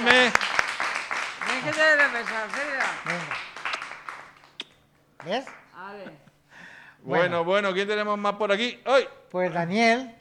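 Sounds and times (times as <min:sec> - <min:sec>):
audience applause: 0:00.0 - 0:04.6
speech: 0:01.6 - 0:03.4, 0:05.2 - 0:06.3, 0:07.0 - 0:10.1.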